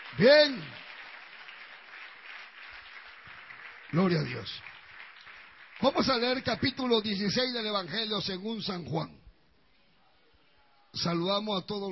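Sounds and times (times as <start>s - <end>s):
church congregation clapping: 0.0s - 7.9s
speech: 0.2s - 0.8s, 3.9s - 4.7s, 5.8s - 9.2s, 10.9s - 11.9s.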